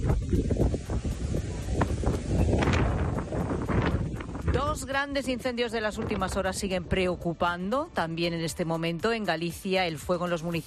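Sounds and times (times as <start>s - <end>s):
gusty wind buffeting the microphone during the wildfires in Ponteceso and Camariñas, Galicia: 0.0s - 7.9s
speech: 4.9s - 10.6s.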